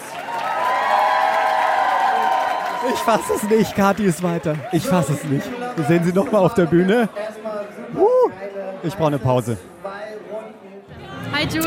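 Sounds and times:
audience applause: 0:00.0 - 0:07.0
cheering and whoops: 0:00.1 - 0:03.8
speech: 0:02.9 - 0:09.8, 0:11.4 - 0:11.6.

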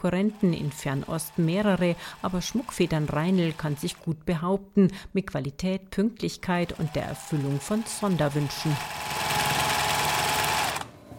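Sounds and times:
sewing machine whirring as workers sew feather headdresses for dance guards: 0:00.0 - 0:04.1, 0:06.5 - 0:11.1
speech: 0:00.0 - 0:09.2.

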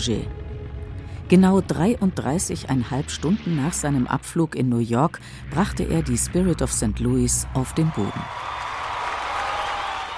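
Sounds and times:
speech: 0:00.0 - 0:00.4, 0:01.3 - 0:08.5
large crowd cheering: 0:07.7 - 0:10.1.

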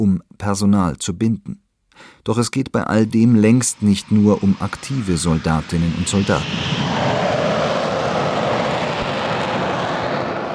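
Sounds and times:
speech: 0:00.0 - 0:07.4
Eurofighter fighter jets roaring over airfield in Lager-Lechfeld near Augsburg: 0:03.6 - 0:10.5.

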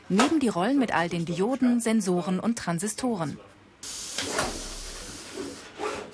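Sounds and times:
speech: 0:00.1 - 0:04.4
automatic pick-and-place machine pneumatic hiss placing components on circuit board: 0:03.8 - 0:06.1.

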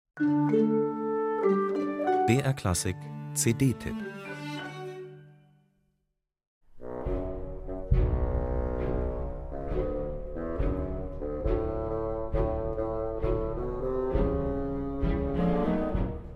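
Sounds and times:
speech: 0:00.2 - 0:01.6, 0:02.3 - 0:04.3
bassoon playing low grumbling notes: 0:06.8 - 0:16.0.

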